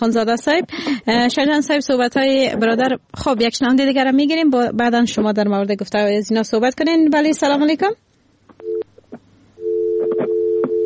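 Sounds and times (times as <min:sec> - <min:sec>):
speech: 0:00.0 - 0:08.1
telephone busy tone over a phone line after dropped call: 0:08.6 - 0:08.9, 0:09.6 - 0:10.8
scattered clicks and line crackle: 0:09.9 - 0:10.8.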